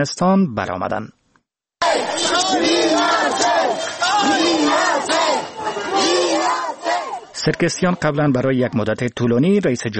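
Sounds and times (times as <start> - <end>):
speech: 0.0 - 1.2, 7.4 - 9.9
protest crowd chanting in the streets: 1.8 - 7.9.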